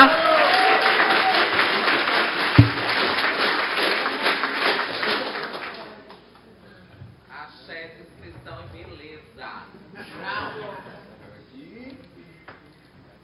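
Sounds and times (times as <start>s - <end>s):
audience applause: 0.0s - 6.1s
sharp thump: 2.6s - 2.9s.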